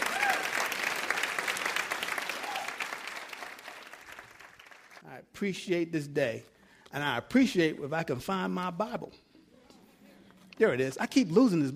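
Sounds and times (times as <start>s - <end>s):
audience applause: 0.0s - 5.0s
speech: 5.4s - 9.2s, 10.6s - 11.7s.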